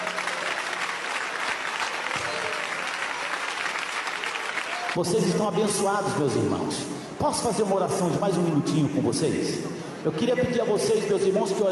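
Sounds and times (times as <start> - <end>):
audience clapping hands: 0.0 - 5.0
speech: 5.0 - 11.7.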